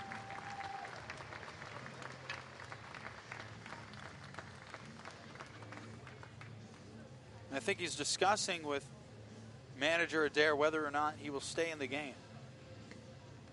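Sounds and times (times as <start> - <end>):
stadium crowd giving an ovation: 0.0 - 5.5
speech: 7.6 - 9.0, 9.8 - 12.2.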